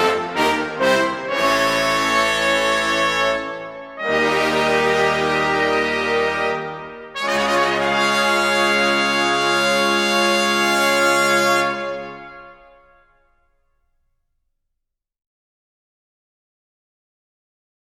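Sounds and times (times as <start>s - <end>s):
brass ensemble fanfare: 0.0s - 13.2s.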